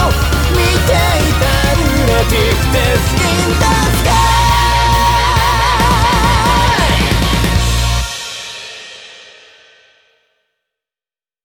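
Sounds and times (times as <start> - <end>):
lunatic vocal: 0.0 - 7.6.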